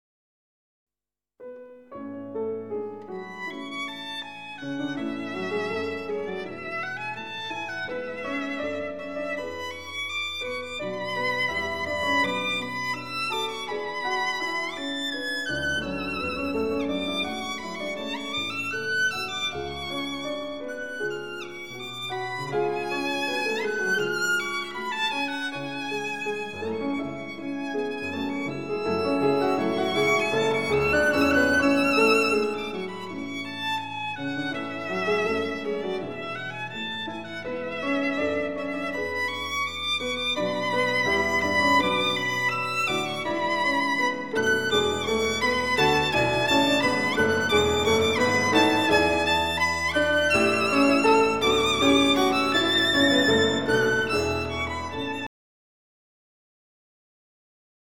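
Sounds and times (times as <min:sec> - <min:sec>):
violin sonata: 0:01.9 - 0:55.3.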